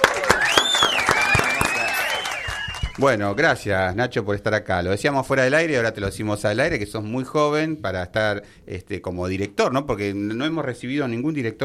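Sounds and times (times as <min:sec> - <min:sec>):
audience applause: 0:00.0 - 0:03.3
speech: 0:03.0 - 0:11.6.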